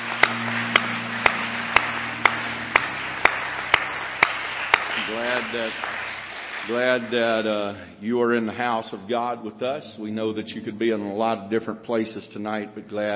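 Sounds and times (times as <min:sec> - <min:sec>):
audience clapping hands: 0:00.0 - 0:07.6
speech: 0:05.1 - 0:05.9, 0:06.6 - 0:13.1.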